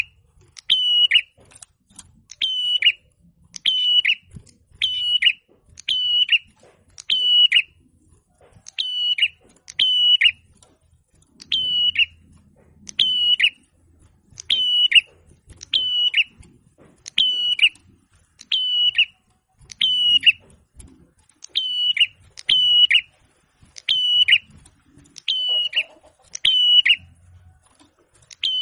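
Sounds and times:
prinia song of high flat whistles with burry endings: 0:00.0 - 0:01.4, 0:02.3 - 0:07.8, 0:08.6 - 0:10.4, 0:11.4 - 0:12.3, 0:12.9 - 0:13.7, 0:14.4 - 0:20.5, 0:21.4 - 0:23.2, 0:23.8 - 0:24.6, 0:25.2 - 0:27.4, 0:28.3 - 0:28.6.

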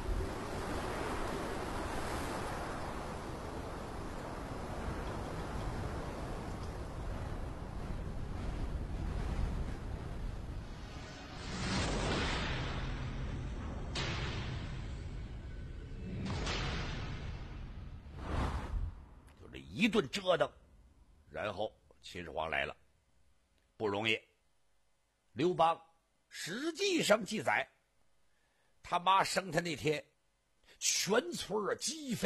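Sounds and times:
strong wind: 0:00.0 - 0:14.0
roaring sea waves: 0:00.0 - 0:19.3
explosions: 0:04.6 - 0:19.2
speech: 0:19.8 - 0:20.6, 0:21.4 - 0:22.8, 0:23.8 - 0:24.3, 0:25.4 - 0:27.7, 0:28.9 - 0:30.1, 0:30.8 - 0:32.2.

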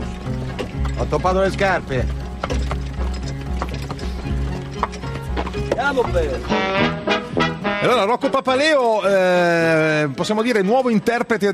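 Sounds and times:
horse hooves clip-clopping at a walking pace: 0:00.0 - 0:11.5
speech: 0:01.0 - 0:02.6, 0:05.7 - 0:11.5.

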